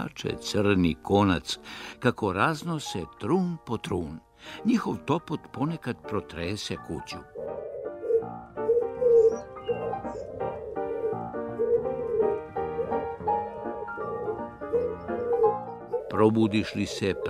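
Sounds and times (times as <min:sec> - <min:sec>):
speech: 0:00.0 - 0:07.4, 0:16.2 - 0:17.2
pigeons cooing on a roof: 0:07.2 - 0:17.2.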